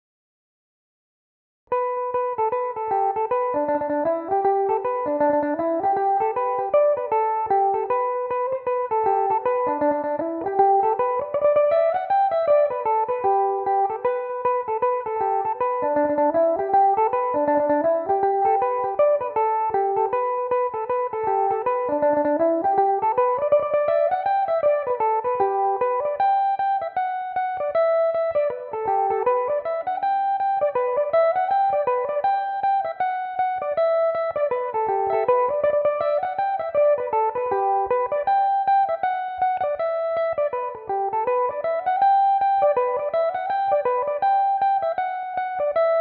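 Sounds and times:
Irish mandolin in G major: 0:01.7 - 0:45.9.

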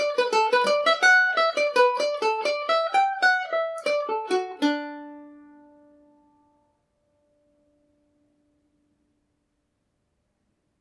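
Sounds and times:
Irish mandolin playing in D major: 0:00.0 - 0:08.3.

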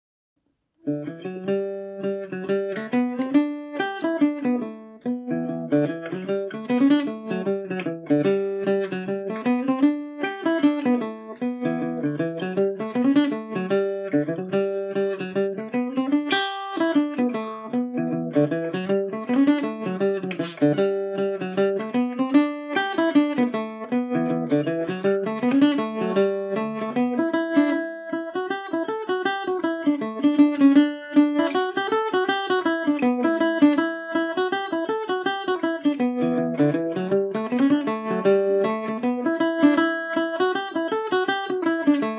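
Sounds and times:
Irish mandolin playing in G major: 0:00.8 - 0:42.1.

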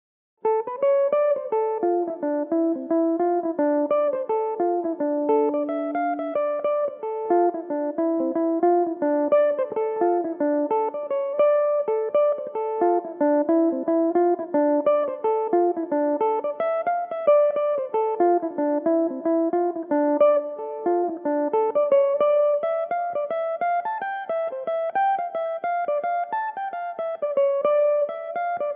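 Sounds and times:
mandolin playing a jig in D dorian: 0:00.5 - 0:28.7.

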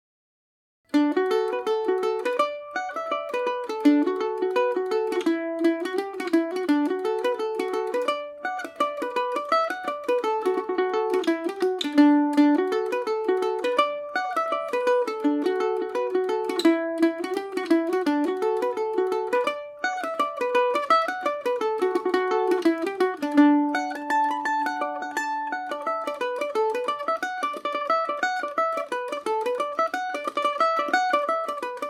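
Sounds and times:
Irish mandolin playing in D major: 0:00.9 - 0:31.8.

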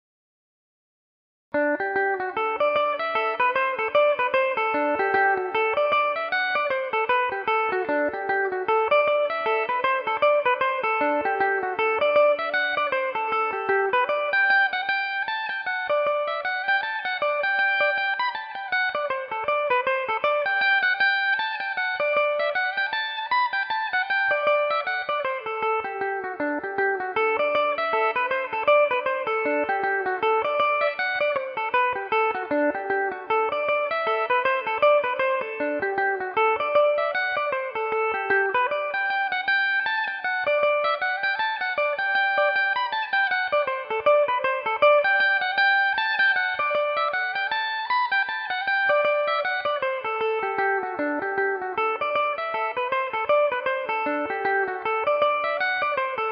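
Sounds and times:
Irish mandolin in G major: 0:01.6 - 0:56.2.

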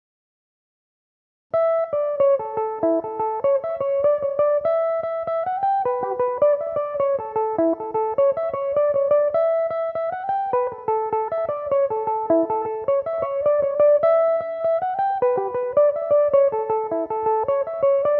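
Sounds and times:
Irish mandolin tunes in A mixolydian: 0:01.6 - 0:18.1.

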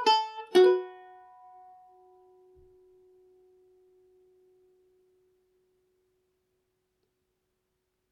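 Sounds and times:
Irish mandolin playing: 0:00.0 - 0:04.5.

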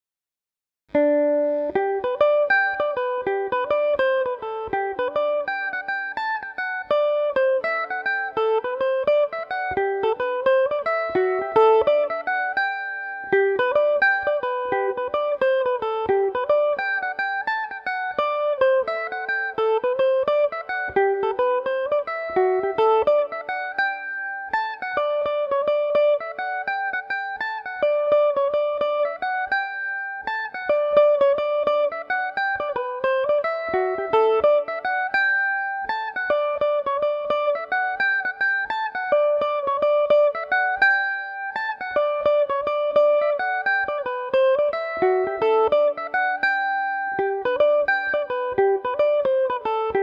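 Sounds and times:
Irish mandolin in G major: 0:00.9 - 0:50.0.

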